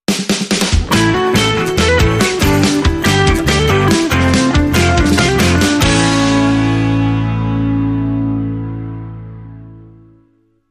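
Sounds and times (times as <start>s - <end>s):
Motown rock music: 0.1s - 10.1s.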